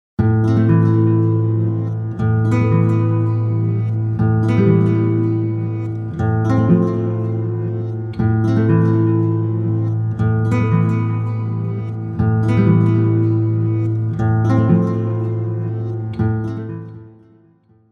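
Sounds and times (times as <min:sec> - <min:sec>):
acoustic guitars: 0:00.2 - 0:17.8.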